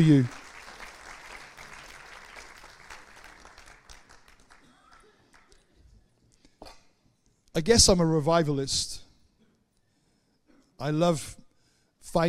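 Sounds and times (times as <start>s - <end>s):
speech: 0.0s - 0.4s, 7.6s - 9.0s, 10.8s - 11.4s, 12.0s - 12.2s
audience clapping: 0.0s - 5.8s.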